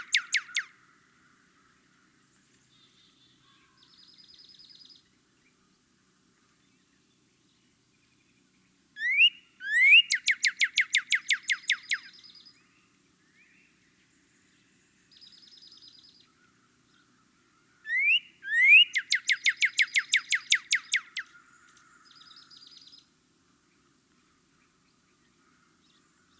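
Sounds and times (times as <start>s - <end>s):
Northern cardinal singing rapid sharp whistled notes: 0.0s - 0.7s, 9.0s - 12.2s, 17.9s - 21.2s.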